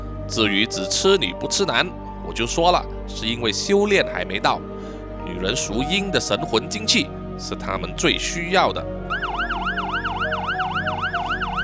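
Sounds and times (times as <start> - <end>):
speech: 0.3 - 4.7, 5.3 - 9.0
ambulance siren yelping: 9.1 - 11.6.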